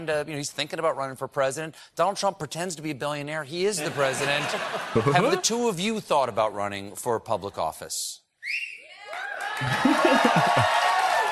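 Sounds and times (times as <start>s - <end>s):
speech: 0.0s - 8.7s, 9.6s - 10.8s
laughter: 3.8s - 5.6s, 9.6s - 11.3s
crowd applause: 9.1s - 11.3s.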